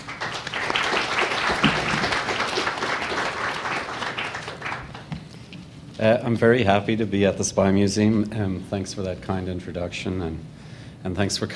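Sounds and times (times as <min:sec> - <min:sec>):
audience applause at the International Spy Museum: 0:00.0 - 0:05.2
speech: 0:06.0 - 0:11.5.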